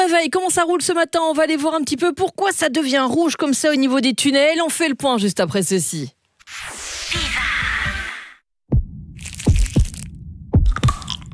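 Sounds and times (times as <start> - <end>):
speech: 0.1 - 6.7
heartbeat sound effect: 8.7 - 11.2.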